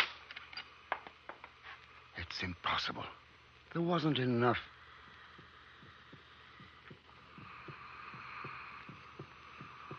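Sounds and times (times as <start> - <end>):
steady whooshing hiss and hum: 0.0 - 9.9
speech: 2.3 - 4.8
heartbeat heard through a stethoscope: 4.9 - 9.9.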